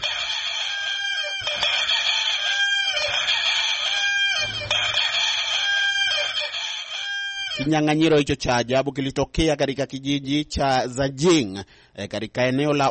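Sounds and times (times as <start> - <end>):
rooster crowing in a crowing contest in Zajing China: 0.0 - 7.7
speech: 7.6 - 12.8.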